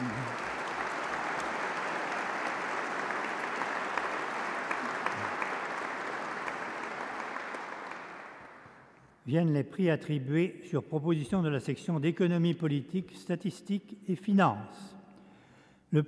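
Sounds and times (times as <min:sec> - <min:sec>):
audience applauding prize winners: 0:00.0 - 0:08.9
speech: 0:09.3 - 0:15.0.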